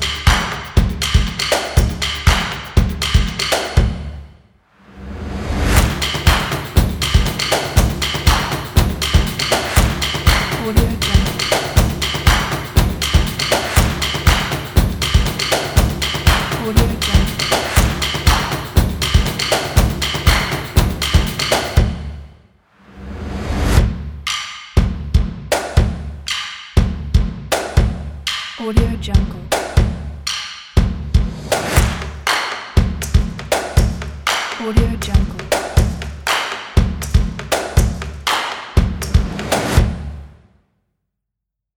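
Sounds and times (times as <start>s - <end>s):
energetic percussion claps: 0.0s - 3.8s, 5.8s - 21.8s, 25.5s - 26.5s, 27.5s - 28.4s, 31.5s - 34.7s, 35.4s - 39.8s
energetic percussion drums: 0.0s - 4.2s, 5.4s - 22.2s, 23.3s - 40.3s.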